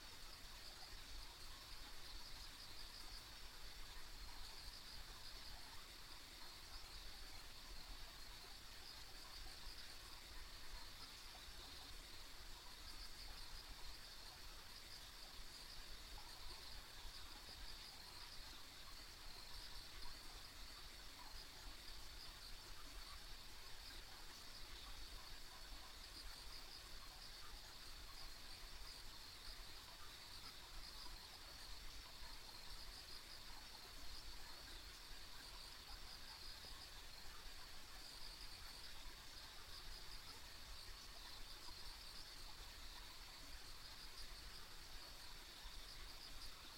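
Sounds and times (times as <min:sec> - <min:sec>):
insect chorus trilling: 0:00.0 - 0:46.7.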